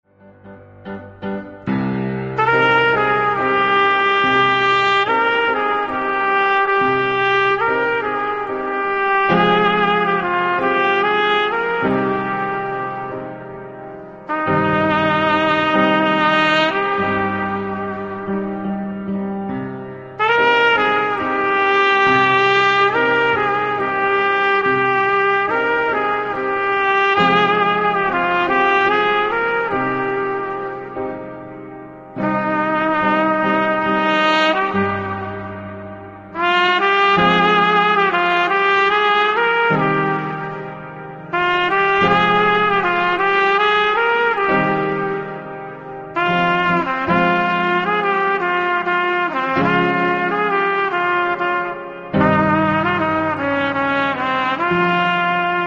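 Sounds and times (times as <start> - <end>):
Gilaki trumpet music: 0.4 - 55.6.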